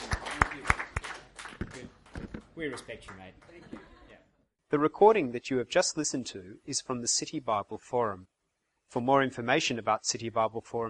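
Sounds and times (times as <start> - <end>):
scattered hand claps: 0.0 - 3.9
speech: 2.6 - 3.8, 4.7 - 10.8.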